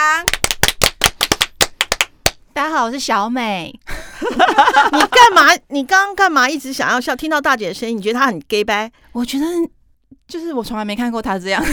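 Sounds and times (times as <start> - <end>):
clapping applause: 0.2 - 2.4
speech: 2.8 - 11.7.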